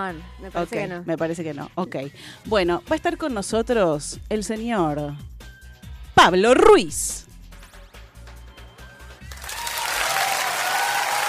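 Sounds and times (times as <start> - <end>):
speech: 0.0 - 5.3, 6.2 - 7.3
studio audience applause: 9.2 - 11.2.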